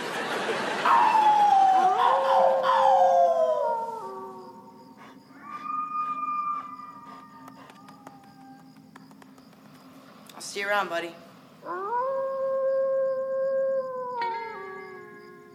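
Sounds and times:
laughter: 0:00.0 - 0:02.1
person howling like a dog: 0:00.8 - 0:08.9, 0:11.6 - 0:15.2
speech: 0:10.6 - 0:11.8.

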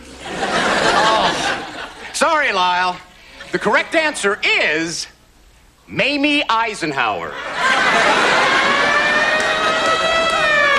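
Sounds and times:
laughter: 0:00.0 - 0:02.2, 0:07.3 - 0:10.7
speech: 0:02.2 - 0:05.1, 0:05.9 - 0:08.2
game show siren: 0:08.0 - 0:10.7.

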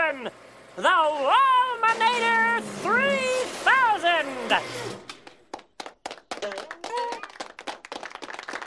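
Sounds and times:
speech: 0:00.1 - 0:05.1
clapping: 0:05.1 - 0:08.6.

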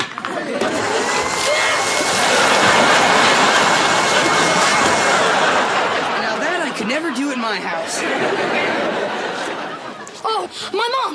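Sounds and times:
laughter: 0:00.0 - 0:10.5
blender running: 0:00.4 - 0:06.7.

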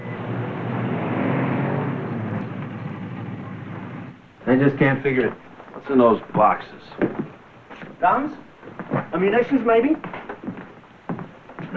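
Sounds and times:
staff car driving past: 0:00.0 - 0:04.2
speech: 0:04.5 - 0:07.2, 0:08.0 - 0:10.2.

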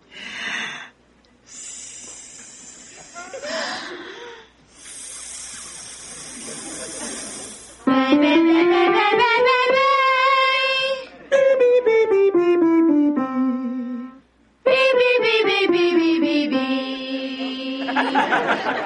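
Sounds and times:
breath let out slowly through the teeth: 0:01.5 - 0:04.0, 0:04.7 - 0:07.8
laughter: 0:05.6 - 0:07.8, 0:17.4 - 0:18.8
person singing loudly: 0:07.9 - 0:11.2, 0:11.8 - 0:18.3.

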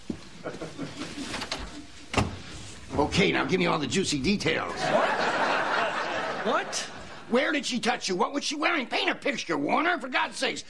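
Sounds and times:
laughter: 0:00.4 - 0:01.4, 0:04.6 - 0:07.4
door being closed indoors: 0:01.4 - 0:03.1
speech: 0:03.0 - 0:05.3, 0:06.4 - 0:10.6.

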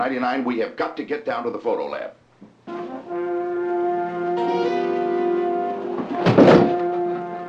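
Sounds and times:
speech: 0:00.0 - 0:02.8
steady layered droning chord: 0:02.7 - 0:07.4
heavy door slamming shut: 0:05.8 - 0:07.3.

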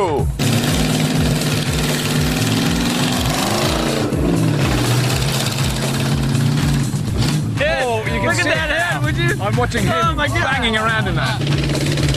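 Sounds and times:
Mule utility vehicle engine racing round track: 0:00.2 - 0:12.1
speech: 0:09.6 - 0:12.0.

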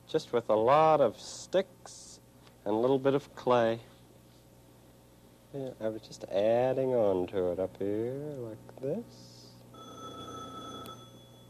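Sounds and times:
speech: 0:00.1 - 0:02.0, 0:02.6 - 0:03.9, 0:05.5 - 0:09.3
telephone ringing: 0:09.7 - 0:11.4.

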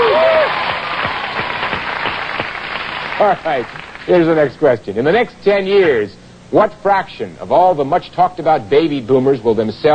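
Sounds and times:
quiz show studio audience applause: 0:00.0 - 0:04.1
speech: 0:03.2 - 0:09.9.

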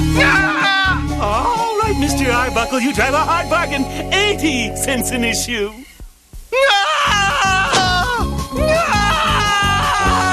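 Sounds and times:
man screaming: 0:00.1 - 0:01.7, 0:06.5 - 0:10.3
speech: 0:02.6 - 0:05.9.

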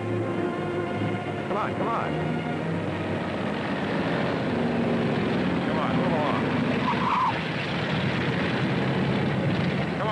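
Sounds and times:
car pulling away along a street: 0:00.0 - 0:10.0
speech: 0:01.6 - 0:02.5.

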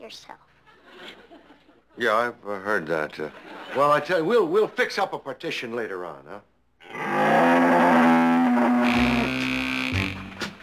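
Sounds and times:
speech: 0:00.1 - 0:01.4, 0:02.0 - 0:06.5
cow mooing: 0:06.8 - 0:10.1.

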